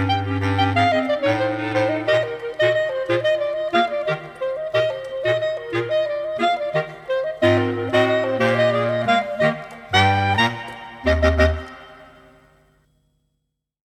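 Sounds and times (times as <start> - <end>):
clarinet quartet playing: 0.0 - 12.4.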